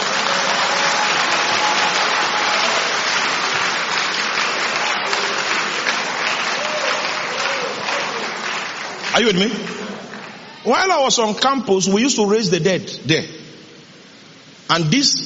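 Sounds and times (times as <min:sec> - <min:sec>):
audience clapping: 0:00.0 - 0:11.0
speech: 0:09.2 - 0:09.8, 0:10.6 - 0:13.4, 0:14.7 - 0:15.2.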